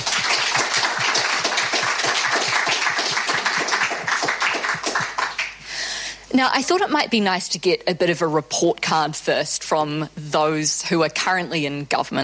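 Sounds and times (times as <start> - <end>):
audience applause: 0.0 - 5.6
speech: 6.4 - 12.2.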